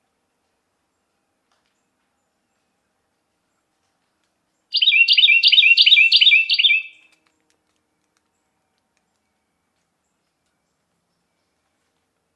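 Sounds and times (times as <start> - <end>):
Carolina wren song: 4.7 - 7.1.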